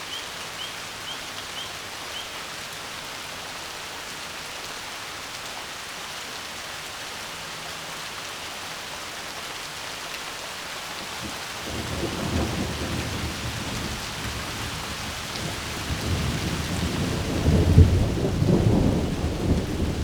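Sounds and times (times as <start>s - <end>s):
rain: 0.0s - 20.0s
peals of thunder: 11.2s - 20.0s.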